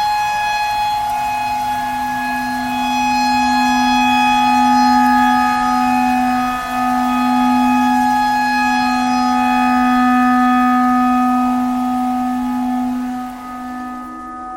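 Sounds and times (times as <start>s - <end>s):
clarinet pentatonic melody imitating a tornado siren: 0.1s - 14.2s.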